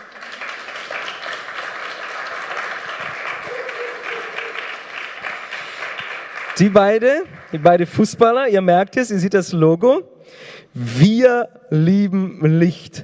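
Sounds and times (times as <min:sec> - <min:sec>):
audience applause: 0:00.0 - 0:07.9
speech: 0:06.6 - 0:13.0.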